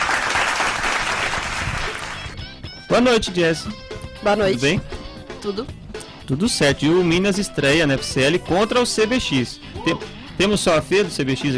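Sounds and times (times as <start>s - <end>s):
audience applause for a guest: 0.0s - 2.4s
speech: 2.9s - 11.5s.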